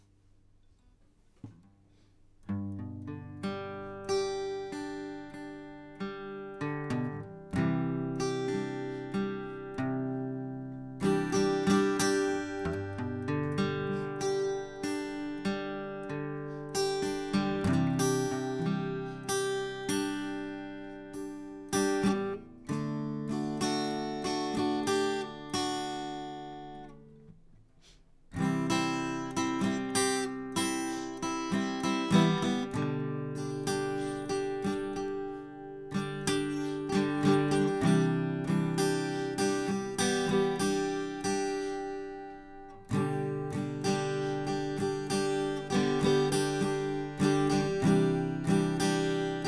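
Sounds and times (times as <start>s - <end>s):
guitar: 0.0s - 49.4s.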